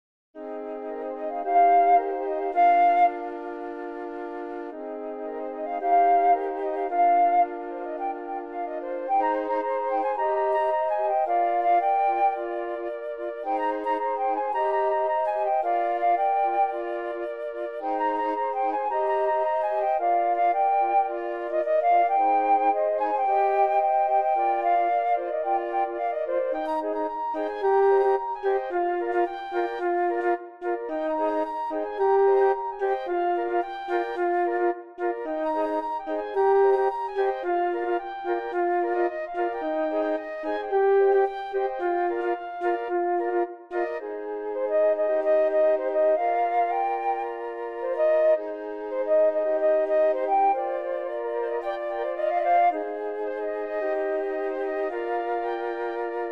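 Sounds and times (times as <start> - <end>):
flute song: 0.4 - 56.3.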